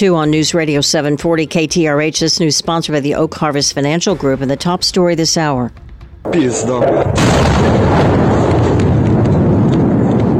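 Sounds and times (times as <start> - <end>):
speech: 0.0 - 8.3
vacuum bomb explosion: 6.3 - 10.3.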